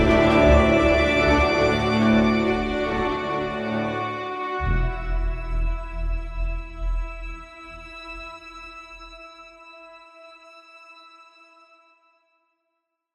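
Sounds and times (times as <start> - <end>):
rhythmic texture: 0.0 - 8.6.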